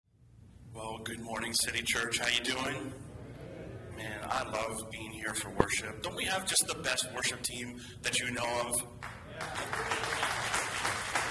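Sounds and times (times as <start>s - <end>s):
speech: 0.8s - 3.0s, 4.0s - 10.4s
audience clapping: 9.0s - 11.2s.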